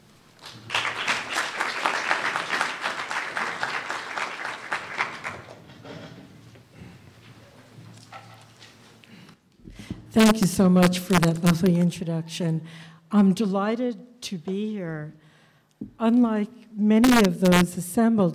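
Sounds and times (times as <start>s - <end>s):
audience applause in Cologne: 0.4s - 5.7s
speech: 10.2s - 15.2s, 16.0s - 18.3s.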